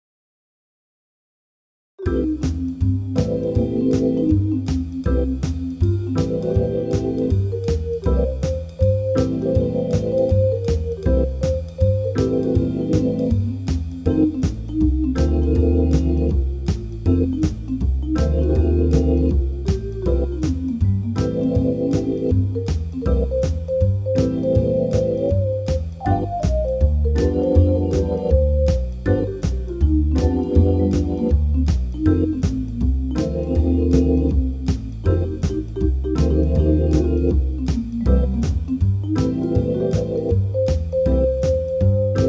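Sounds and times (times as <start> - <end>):
MIDI blues music: 2.0 - 42.2.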